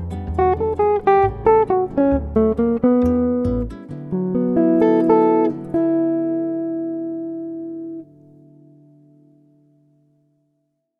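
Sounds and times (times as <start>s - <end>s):
classical jazz music: 0.0s - 8.0s.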